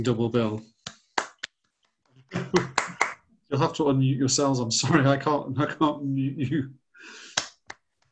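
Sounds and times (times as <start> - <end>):
speech: 0.0 - 0.8, 2.5 - 2.9, 3.5 - 7.2
disorganized round of applause over video call: 2.4 - 3.2.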